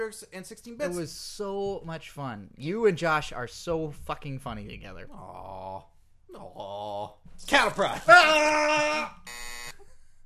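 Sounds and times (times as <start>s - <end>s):
speech: 0.0s - 9.5s
person shouting: 8.0s - 9.2s.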